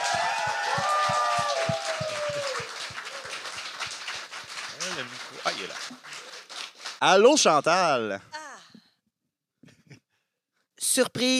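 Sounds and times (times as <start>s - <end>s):
whooping cheers: 0.0s - 3.6s
audience applause: 0.0s - 7.4s
speech: 7.0s - 8.3s, 11.0s - 11.3s.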